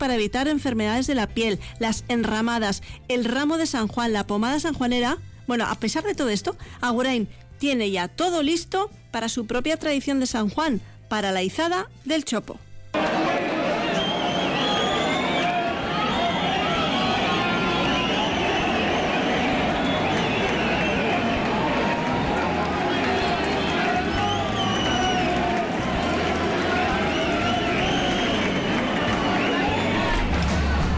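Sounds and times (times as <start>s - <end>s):
speech: 0.0s - 13.1s
large crowd applauding as a poplar trunk is hoisted: 13.0s - 30.9s
overlapping voices and shouts: 13.0s - 30.9s.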